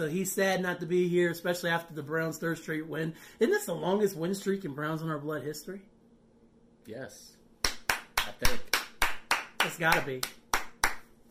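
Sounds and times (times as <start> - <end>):
speech: 0.0 - 5.9, 6.8 - 7.4, 8.4 - 8.8, 9.6 - 10.4
sharp hand claps: 7.6 - 11.1.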